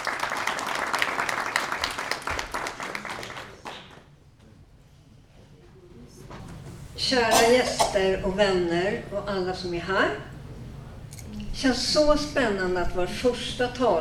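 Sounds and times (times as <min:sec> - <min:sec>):
audience applause: 0:00.0 - 0:04.1
speech: 0:07.1 - 0:10.3, 0:11.6 - 0:13.9.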